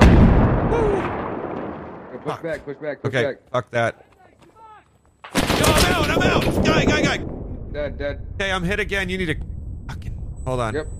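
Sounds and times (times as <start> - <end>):
grenade blast in the video game Six Days in Fallujah: 0.0 - 2.8, 5.3 - 8.5
speech: 2.2 - 4.1, 5.6 - 10.9.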